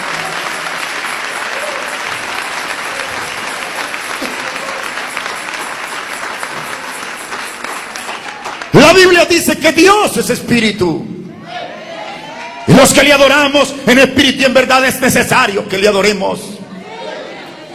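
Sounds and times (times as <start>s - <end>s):
audience applauding in praise: 0.0s - 9.9s
speech: 8.9s - 11.1s, 12.7s - 16.6s.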